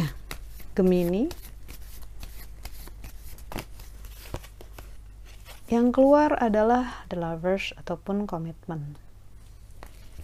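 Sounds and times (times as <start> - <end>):
tarot cards being shuffled: 0.0 - 6.0
speech: 0.8 - 1.4, 5.7 - 9.0.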